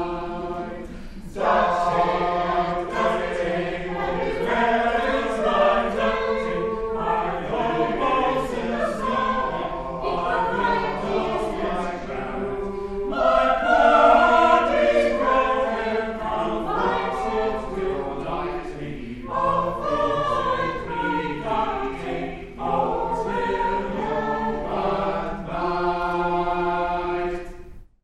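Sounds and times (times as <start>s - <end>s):
madrigal in C major: 0.0s - 27.8s.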